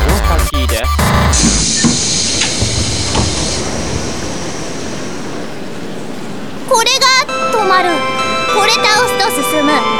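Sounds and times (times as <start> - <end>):
train doors closing with pneumatic hiss: 0.0 - 9.9
soft thumps and knocks: 1.0 - 5.5.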